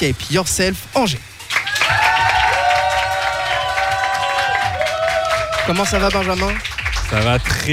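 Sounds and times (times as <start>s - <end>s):
speech: 0.0s - 1.3s, 5.7s - 7.7s
crowd in a bar applauding and cheering to welcome a guest: 1.4s - 7.7s
long sustained shout: 1.6s - 5.8s.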